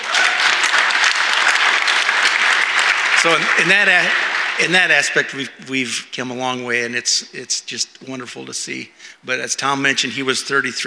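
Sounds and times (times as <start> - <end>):
audience applause for the worship team: 0.0 - 5.3
speech: 3.2 - 10.8.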